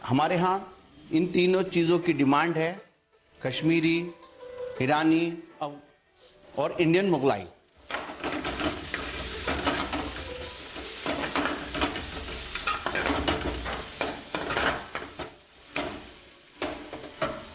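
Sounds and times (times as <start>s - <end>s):
speech: 0.1s - 4.2s, 4.8s - 5.9s, 6.6s - 7.6s
onions sizzling and browning in a pan: 7.6s - 17.5s
cookware clattering: 7.9s - 17.5s
scraping stirs: 7.9s - 17.5s.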